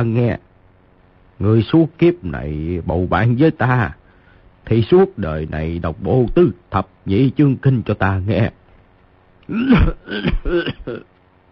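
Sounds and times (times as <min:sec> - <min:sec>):
speech: 0:00.0 - 0:00.5, 0:01.4 - 0:04.0, 0:04.6 - 0:08.6, 0:09.5 - 0:11.1
harsh raspy coughing fit: 0:09.5 - 0:11.1.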